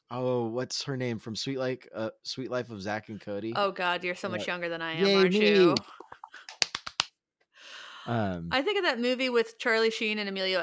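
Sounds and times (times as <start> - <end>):
speech: 0.1 - 6.4, 8.0 - 10.6
soft golf clap: 5.8 - 7.1.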